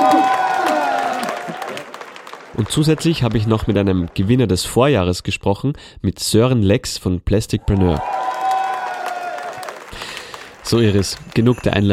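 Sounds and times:
audience applause: 0.0 - 4.9, 7.7 - 11.9
speech: 2.6 - 8.3, 10.7 - 11.9.

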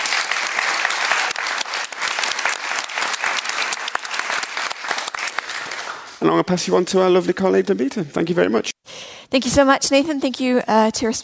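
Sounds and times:
audience applause: 0.0 - 6.2
speech: 6.2 - 8.7, 9.3 - 11.2.

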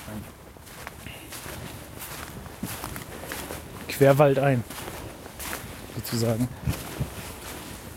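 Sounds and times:
footsteps crunching over rough ground walking into a forest: 0.0 - 7.9
speech: 0.1 - 0.4, 4.0 - 4.9, 6.0 - 6.8.

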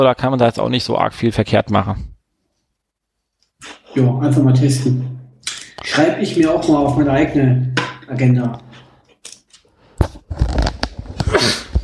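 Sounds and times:
speech: 0.0 - 2.1, 3.6 - 5.2, 5.8 - 8.7
person sneezing: 11.2 - 11.8.

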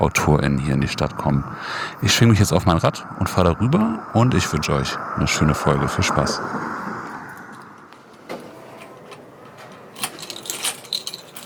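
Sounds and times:
speech: 0.0 - 6.8
keys jangling: 8.6 - 11.4.

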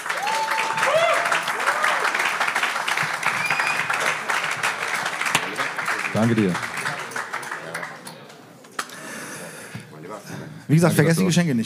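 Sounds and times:
audience applause: 0.0 - 8.4
speech: 6.2 - 6.7, 10.7 - 11.6.

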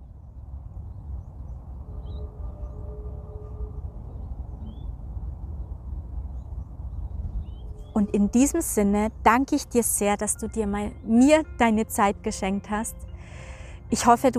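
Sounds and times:
birds singing: 0.9 - 9.1
speech: 8.0 - 14.3.

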